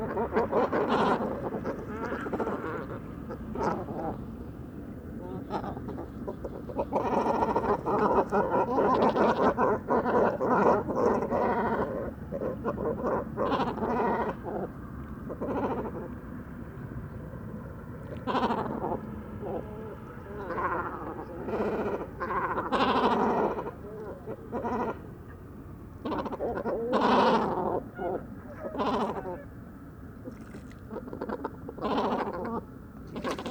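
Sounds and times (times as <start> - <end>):
great cormorants Phalacrocorax carbo croaking at a roost by the Vaccarès in the Camargue: 0.0 - 33.4.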